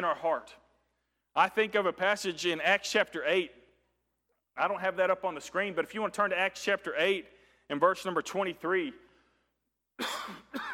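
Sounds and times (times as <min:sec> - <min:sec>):
speech: 0:00.0 - 0:00.6, 0:01.4 - 0:03.6, 0:04.6 - 0:09.0, 0:10.0 - 0:10.7
man coughing harshly during an evening sermon: 0:10.0 - 0:10.7.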